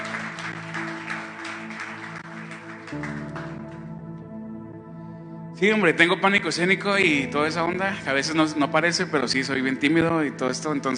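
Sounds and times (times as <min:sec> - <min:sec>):
audience clapping: 0:00.0 - 0:03.9
speech: 0:02.9 - 0:03.3, 0:05.6 - 0:10.9.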